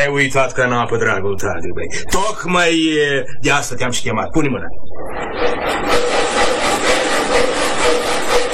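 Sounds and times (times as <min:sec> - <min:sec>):
speech: 0:00.0 - 0:05.9
two-man hand saw cutting wood: 0:05.2 - 0:08.5.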